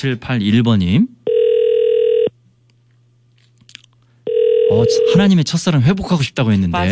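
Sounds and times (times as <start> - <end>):
speech: 0.0 - 1.2, 4.7 - 6.8
telephone ringback tone of an unanswered call to a landline: 1.3 - 2.3, 4.3 - 5.2.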